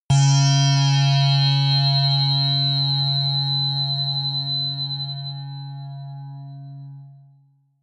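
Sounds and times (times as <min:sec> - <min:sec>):
high synth saw hit: 0:00.1 - 0:03.6.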